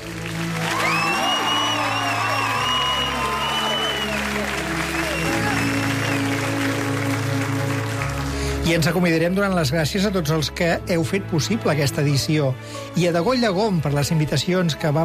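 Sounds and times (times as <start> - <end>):
audience applause: 0.0 - 9.3
speech: 8.7 - 15.0.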